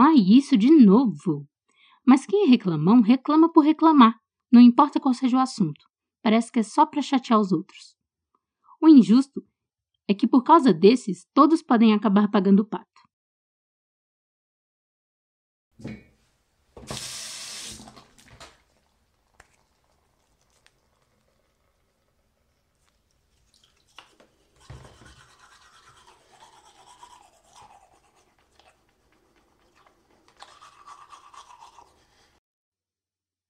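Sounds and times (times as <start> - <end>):
speech: 0.2 - 8.0, 8.8 - 9.5, 10.1 - 12.9
tap water running: 15.8 - 27.2
toothbrush scrubbing: 16.9 - 32.4.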